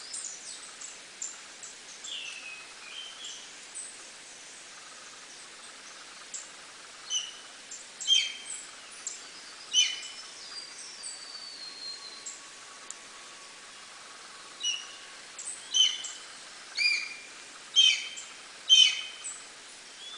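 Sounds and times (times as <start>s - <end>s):
Black-and-white Hawk-Eagle whistled calls: 8.0s - 8.6s, 9.7s - 10.2s, 14.6s - 15.0s, 15.6s - 16.2s, 16.8s - 19.3s.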